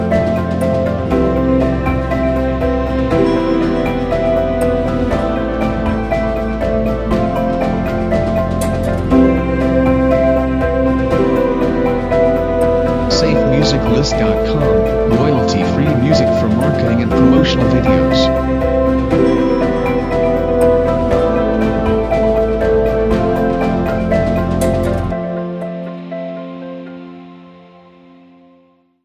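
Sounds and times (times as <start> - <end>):
ambient music: 0.0 - 28.9.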